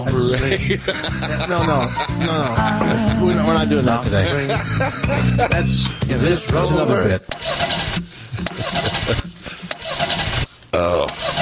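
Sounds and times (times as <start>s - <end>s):
laughter: 0.3s - 6.0s, 8.3s - 9.8s
speech: 0.3s - 7.6s
engine cranking without starting, vehicle out of gas: 7.3s - 10.5s, 11.1s - 11.3s.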